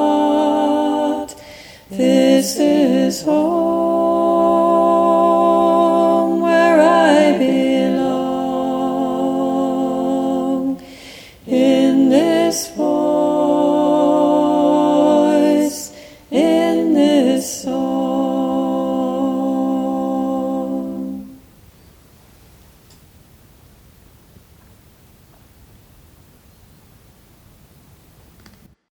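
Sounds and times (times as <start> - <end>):
alto voice singing: 0.0 - 21.5.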